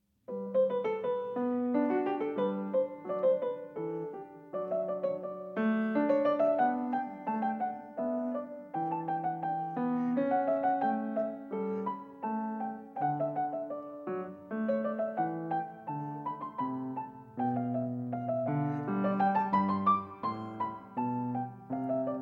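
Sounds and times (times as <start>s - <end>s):
classical variation piece: 0.0s - 22.2s.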